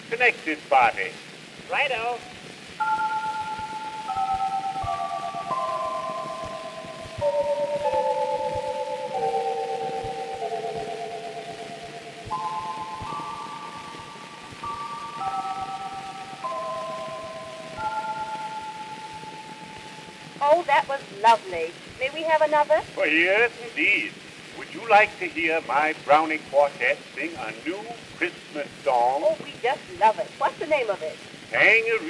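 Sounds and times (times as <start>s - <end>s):
speech: 0.1s - 2.9s, 20.4s - 32.0s
toy chime melody: 2.8s - 20.4s.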